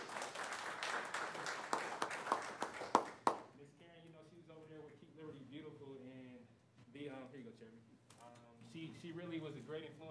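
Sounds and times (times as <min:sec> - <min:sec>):
audience hand clapping applause: 0:00.0 - 0:03.5
speech: 0:08.8 - 0:10.0.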